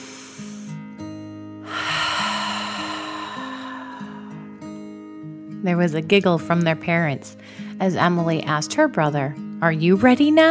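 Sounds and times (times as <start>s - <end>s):
deep breath in and out during a dragon-breath exercise: 0.0s - 0.8s, 1.6s - 5.0s
soft sustained musical tones: 1.7s - 5.6s
speech: 5.6s - 10.4s.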